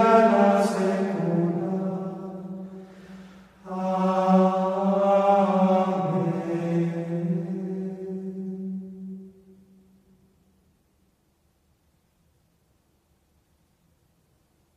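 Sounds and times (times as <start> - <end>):
choir singing: 0.0 - 2.9, 3.6 - 9.2.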